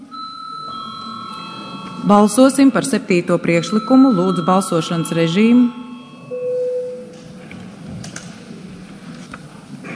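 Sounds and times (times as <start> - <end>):
low murmur in a parliament chamber: 0.0 - 6.3, 6.9 - 9.9
parliament chamber bell before a vote: 0.0 - 7.5
speech: 2.0 - 5.8.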